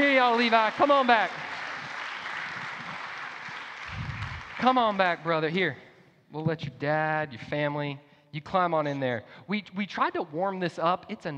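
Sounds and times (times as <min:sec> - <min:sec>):
speech: 0:00.0 - 0:01.4, 0:04.6 - 0:11.3
crowd round of applause: 0:00.0 - 0:05.5.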